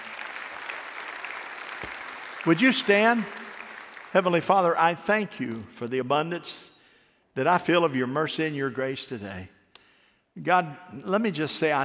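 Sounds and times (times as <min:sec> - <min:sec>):
audience clapping: 0:00.0 - 0:05.8
speech: 0:02.4 - 0:03.4, 0:04.1 - 0:06.7, 0:07.4 - 0:09.6, 0:10.4 - 0:11.8.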